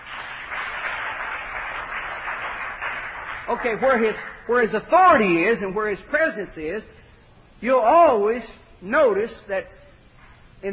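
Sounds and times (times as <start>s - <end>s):
people clapping hands: 0.0s - 4.6s
speech: 3.5s - 7.0s, 7.6s - 9.8s, 10.6s - 10.7s.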